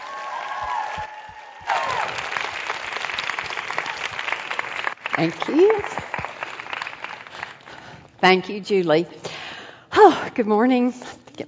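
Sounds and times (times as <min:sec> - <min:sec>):
audience applause welcoming a guest speaker to the stage: 0:00.0 - 0:07.8
speech: 0:05.2 - 0:06.2, 0:08.2 - 0:09.4, 0:10.0 - 0:11.4.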